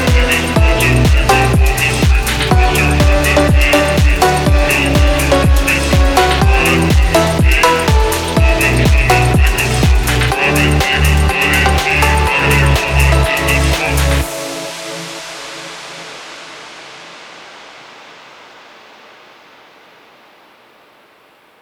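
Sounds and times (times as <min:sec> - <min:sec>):
funky phonk music: 0:00.0 - 0:16.4.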